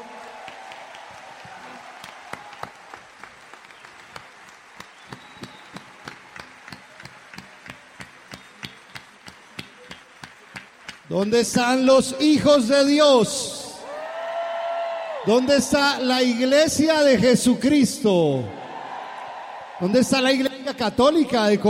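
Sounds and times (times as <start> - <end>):
audience applauding rhythmically: 0.0 - 13.0, 18.6 - 21.6
speech: 11.1 - 13.6, 15.3 - 18.6, 19.8 - 21.6.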